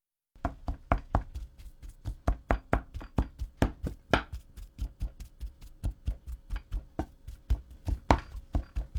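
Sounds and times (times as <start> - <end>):
mashing boiled sweet potatoes in a pot: 0.4 - 8.9.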